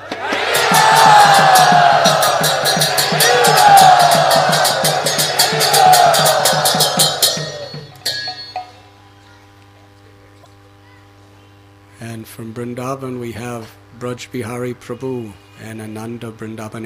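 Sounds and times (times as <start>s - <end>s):
crowd cheering and shouting at a Punayatra gathering: 0.0s - 8.5s
speech: 14.1s - 16.8s.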